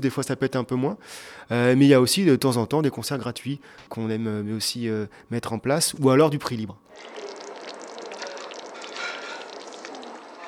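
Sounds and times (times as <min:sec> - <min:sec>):
speech: 0:00.0 - 0:07.4
bolognaise sauce for lasagne bubbling in a pot: 0:06.9 - 0:10.4.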